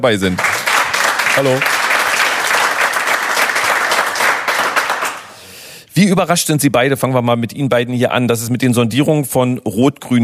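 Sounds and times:
speech: 0:00.0 - 0:00.5, 0:01.4 - 0:01.8, 0:06.0 - 0:10.2
applause: 0:00.2 - 0:05.4.

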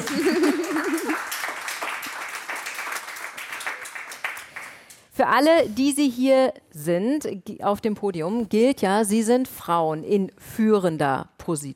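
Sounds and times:
laughter: 0:00.0 - 0:01.3
audience clapping: 0:00.0 - 0:05.1
speech: 0:05.2 - 0:11.7.

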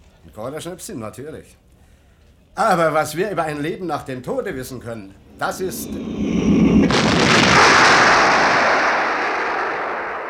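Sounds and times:
speech: 0:00.4 - 0:01.6, 0:02.6 - 0:06.4
cannonball explosion: 0:05.2 - 0:10.2
cannonball whistling through the air: 0:05.7 - 0:10.2.

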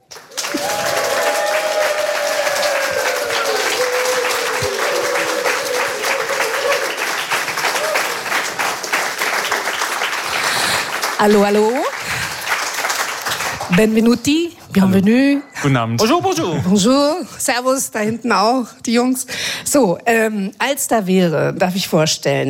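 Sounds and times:
warm enthusiastic audience applause: 0:00.0 - 0:14.2
speech: 0:11.2 - 0:11.9, 0:13.7 - 0:22.4.

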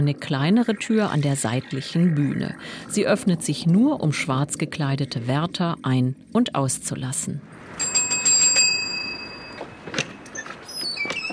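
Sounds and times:
speech: 0:00.0 - 0:07.8
bell ringing: 0:07.8 - 0:10.3.

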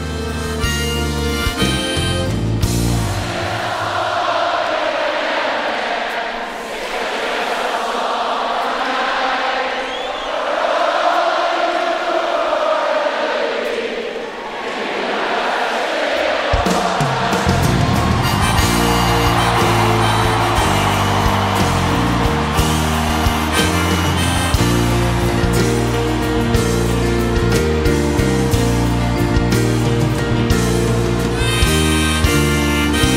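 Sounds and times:
band playing: 0:00.0 - 0:04.2, 0:16.5 - 0:33.1
concert audience singing along in unison: 0:02.9 - 0:30.5.

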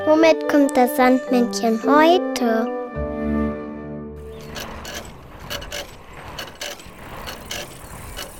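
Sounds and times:
speech: 0:00.2 - 0:02.7
scooter: 0:04.2 - 0:08.3.

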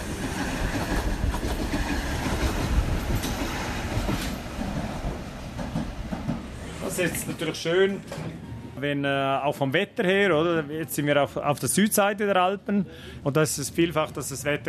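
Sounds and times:
train running on mountain railway: 0:00.0 - 0:09.0
speech: 0:07.0 - 0:14.6.

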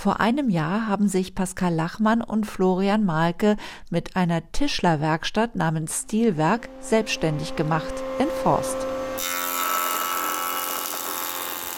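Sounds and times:
speech: 0:00.0 - 0:09.4
old band saw from around 1930 to 1940 running in a carpentry workshop: 0:06.1 - 0:11.7.

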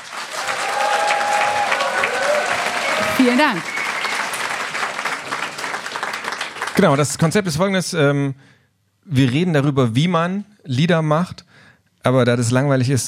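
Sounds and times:
audience applause: 0:00.0 - 0:07.4
speech: 0:03.2 - 0:03.7, 0:06.8 - 0:13.0.

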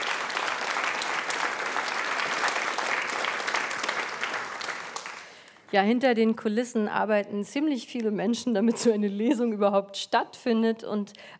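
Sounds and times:
audience applause: 0:00.0 - 0:05.5
speech: 0:05.7 - 0:11.3.

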